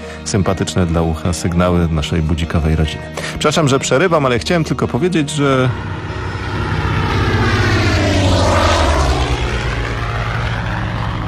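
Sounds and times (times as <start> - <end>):
speech: 0.2 - 6.2
propeller airplane engine roar passing overhead: 3.1 - 11.2.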